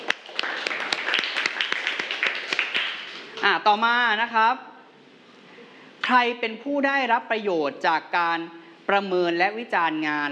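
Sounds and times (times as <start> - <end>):
classroom applause: 0.0 - 3.4
speech: 3.4 - 4.7, 6.1 - 10.3.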